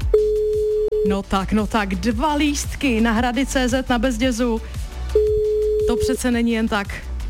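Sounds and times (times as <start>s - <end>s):
telephone line tone while dialing: 0.2s - 1.2s, 5.2s - 6.2s
speech: 1.0s - 4.8s, 5.9s - 7.1s.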